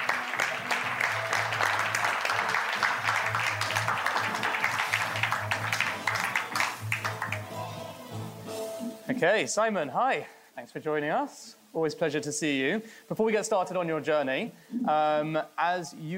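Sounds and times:
audience applause: 0.0 - 8.0
speech: 9.2 - 16.1.

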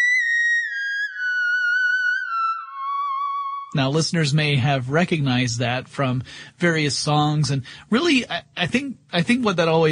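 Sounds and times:
theremin playing: 0.0 - 3.8
speech: 3.7 - 9.9.

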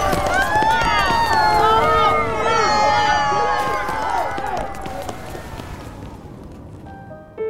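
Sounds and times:
men shouting in panic: 0.0 - 6.2
hurried scuffling footsteps: 0.0 - 7.4.

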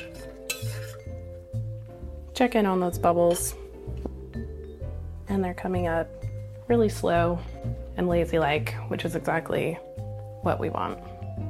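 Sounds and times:
spoon stirring a metal pot: 0.0 - 1.3
speech: 2.4 - 3.6, 5.3 - 11.1.

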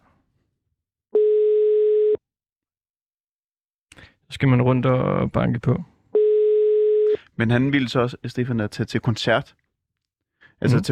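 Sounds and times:
telephone busy signal: 1.2 - 2.2, 6.2 - 7.1
speech: 4.3 - 5.9, 7.4 - 9.6, 10.6 - 10.9.

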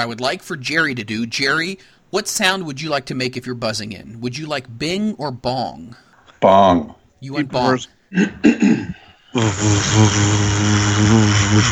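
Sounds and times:
speech: 0.0 - 11.7
short breathy puffs: 8.0 - 11.7
person imitating a motorboat with the mouth: 9.4 - 11.7.

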